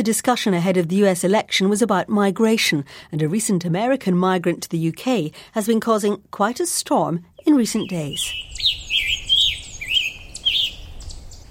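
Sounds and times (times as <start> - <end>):
speech: 0.0 - 9.2
scarlet tanager song: 7.4 - 11.5.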